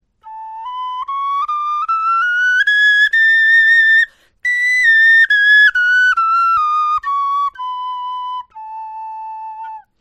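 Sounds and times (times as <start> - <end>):
bone flutes playing a scale: 0.2 - 9.9.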